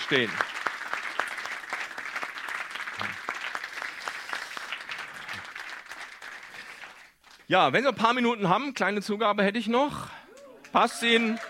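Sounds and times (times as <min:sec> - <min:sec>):
audience applause: 0:00.0 - 0:07.2, 0:10.6 - 0:11.4
speech: 0:00.1 - 0:00.6, 0:07.5 - 0:11.4.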